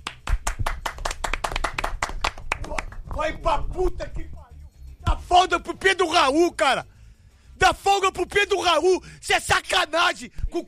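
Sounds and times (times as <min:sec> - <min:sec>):
round of applause: 0:00.0 - 0:03.2
speech: 0:03.2 - 0:04.4, 0:05.0 - 0:06.9, 0:07.6 - 0:10.6.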